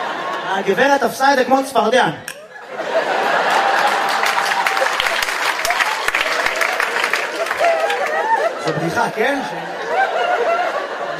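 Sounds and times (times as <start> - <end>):
laughter: 0.0 - 1.1, 2.4 - 11.1
speech: 0.5 - 3.2, 8.7 - 10.5
crowd clapping: 3.0 - 8.7.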